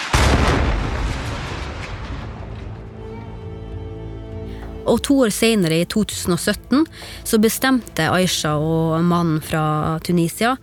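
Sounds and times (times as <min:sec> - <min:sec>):
explosive blast from US-led coalition bombing of Raqqa Syria: 0:00.0 - 0:03.1
speech: 0:04.8 - 0:10.6.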